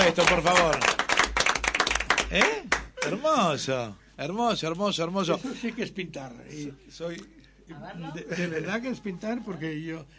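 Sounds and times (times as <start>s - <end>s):
applause: 0.0s - 3.2s
speech: 0.1s - 1.0s, 2.3s - 10.1s.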